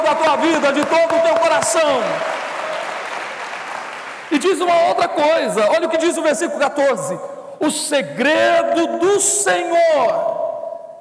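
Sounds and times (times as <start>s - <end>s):
audience applauding: 0.0s - 5.1s
speech: 0.4s - 2.4s, 4.3s - 10.4s.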